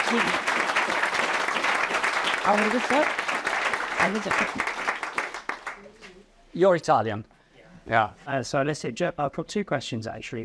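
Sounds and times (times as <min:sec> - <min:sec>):
audience applause: 0:00.0 - 0:05.8
speech: 0:00.1 - 0:00.5, 0:02.4 - 0:03.2, 0:04.0 - 0:04.9, 0:06.6 - 0:07.3, 0:07.9 - 0:10.4.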